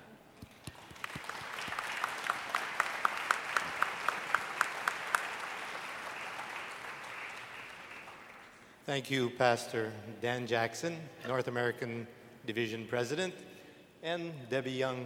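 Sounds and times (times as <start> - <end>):
audience applause: 0.7 - 8.6
speech: 8.9 - 15.0.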